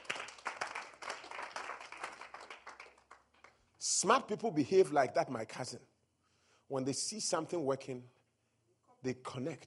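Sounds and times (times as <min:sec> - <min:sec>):
audience clapping: 0:00.0 - 0:03.7
speech: 0:03.8 - 0:05.9, 0:06.7 - 0:08.2, 0:09.0 - 0:09.6.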